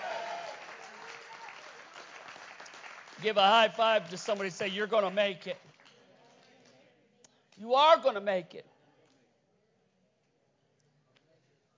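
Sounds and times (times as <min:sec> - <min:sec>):
crowd clapping: 0:00.0 - 0:06.8
speech: 0:03.2 - 0:05.8, 0:07.6 - 0:08.7.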